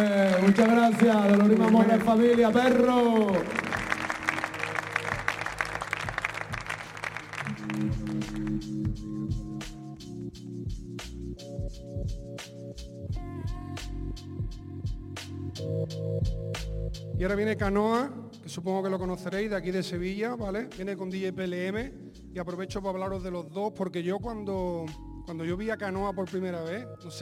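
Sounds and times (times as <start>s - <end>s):
speech: 0.0s - 3.6s, 11.8s - 27.1s
crowd applauding for performers: 0.0s - 8.8s
steady musical beat with sharp percussive hits and sustained tones: 2.0s - 23.4s, 24.2s - 26.4s.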